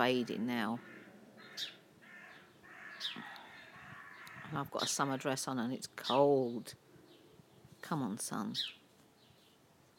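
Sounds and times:
speech: 0.0 - 1.0, 1.6 - 1.8, 4.5 - 6.8, 7.8 - 8.8
crows cawing: 0.0 - 5.4.

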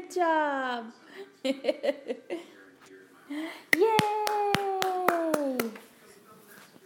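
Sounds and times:
speech: 0.1 - 2.5
hands clapping: 3.7 - 5.9.

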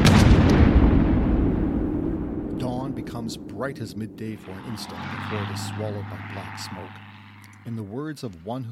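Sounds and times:
bombs and shells exploding: 0.0 - 4.3
speech: 3.3 - 8.7.

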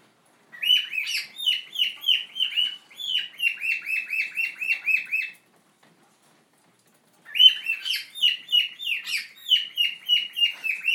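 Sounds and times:
pet bird singing: 0.5 - 5.4, 7.3 - 10.9.

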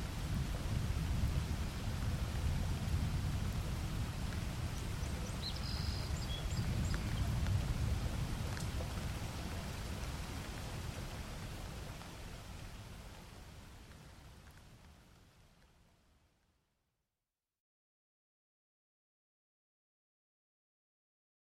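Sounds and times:
rain: 0.0 - 16.8
birds chirping: 4.8 - 8.9.

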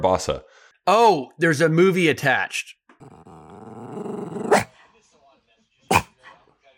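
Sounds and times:
speech: 0.0 - 3.4
dog's little angry growl: 3.0 - 4.7, 5.9 - 6.1.

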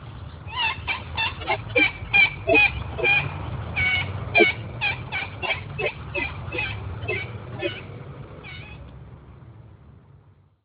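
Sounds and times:
coots at Cabbage Tree Creek: 0.5 - 7.9.

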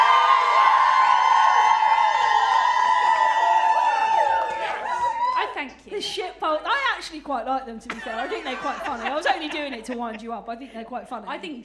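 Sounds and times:
crowd cheering and whooping: 0.0 - 5.6
speech: 6.0 - 11.6
laughter: 7.9 - 10.4.

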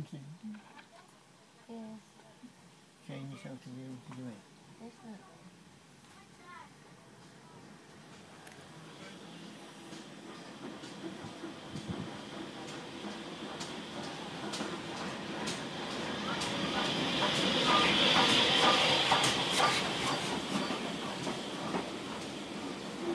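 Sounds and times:
train leaving Churston: 7.2 - 23.1
whistling: 19.6 - 20.8.

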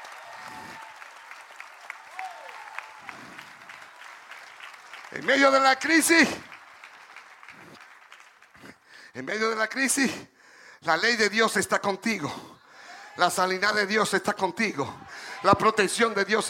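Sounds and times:
audience applause: 0.0 - 8.8, 14.6 - 16.4
speech: 5.1 - 6.5, 9.2 - 12.5, 13.2 - 16.4.

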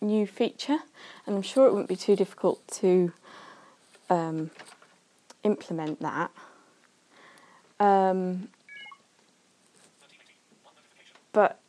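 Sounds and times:
speech: 0.0 - 3.2, 4.1 - 4.8, 5.4 - 6.5, 7.8 - 8.6, 11.4 - 11.6
iPhone electronic alert: 8.7 - 9.1.

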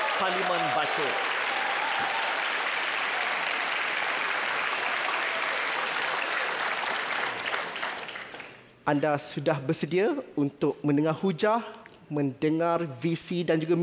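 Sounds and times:
audience applause: 0.0 - 8.7
speech: 0.2 - 1.4, 8.9 - 13.8.

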